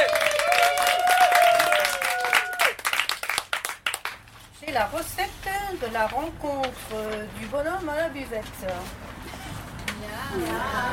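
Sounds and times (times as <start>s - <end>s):
crowd applause: 0.0s - 4.1s
speech: 4.8s - 9.0s, 10.0s - 10.9s.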